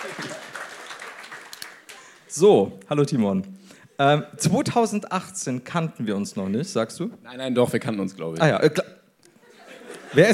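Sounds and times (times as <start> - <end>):
laughter: 0.0 - 0.7, 9.3 - 10.3
audience clapping: 0.0 - 2.4
speech: 2.4 - 8.9, 10.1 - 10.3.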